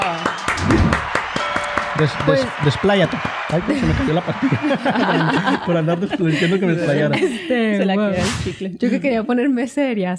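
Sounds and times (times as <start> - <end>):
scattered applause: 0.0 - 5.8
speech: 2.0 - 10.1
laughter: 2.1 - 9.2.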